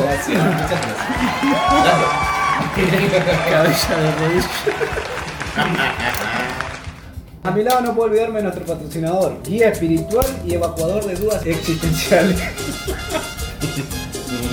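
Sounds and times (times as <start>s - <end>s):
laughter: 0.0s - 6.9s, 11.6s - 14.5s
crowd applause: 0.0s - 7.2s
speech: 0.2s - 6.7s, 7.4s - 14.0s.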